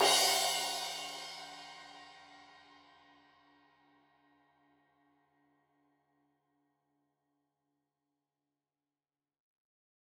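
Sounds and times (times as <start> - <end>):
15 inch crash cymbal edge hit: 0.0 - 2.0.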